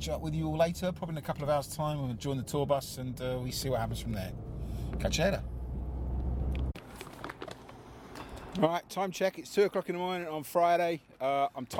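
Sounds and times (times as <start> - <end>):
speech: 0.0 - 5.6, 8.6 - 11.7
car engine droning with low steady rumble: 0.0 - 8.1.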